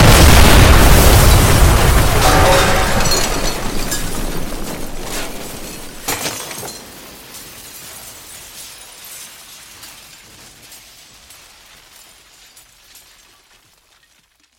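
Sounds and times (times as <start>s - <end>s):
powerful deafening explosion from a shot: 0.0s - 6.1s.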